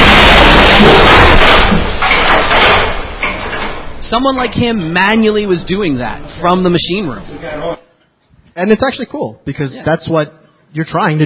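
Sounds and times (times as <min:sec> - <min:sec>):
heavy elevator car crashing into the pit buffer: 0:00.0 - 0:07.8
speech: 0:04.1 - 0:07.9, 0:08.6 - 0:11.2.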